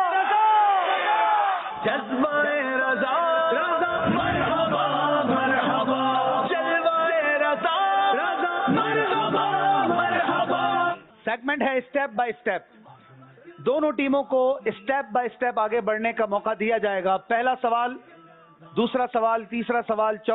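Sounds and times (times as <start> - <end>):
crowd shouting a slogan response at a team quiz competition: 0.0 - 11.1
speech: 11.4 - 12.8, 13.6 - 20.3.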